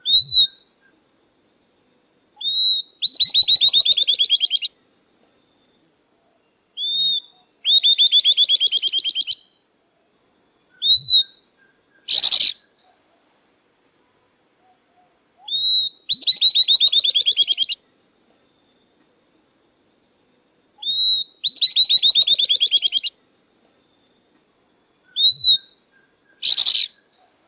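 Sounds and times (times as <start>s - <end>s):
southern beardless-tyrannulet song: 0.0s - 1.0s, 2.4s - 4.8s, 6.8s - 9.6s, 10.8s - 13.0s, 15.4s - 17.8s, 20.8s - 23.2s, 25.0s - 27.3s.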